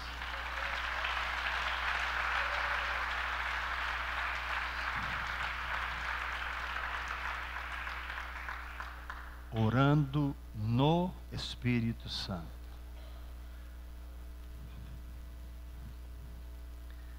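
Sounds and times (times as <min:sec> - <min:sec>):
audience applause: 0:00.0 - 0:09.8
speech: 0:09.5 - 0:12.6.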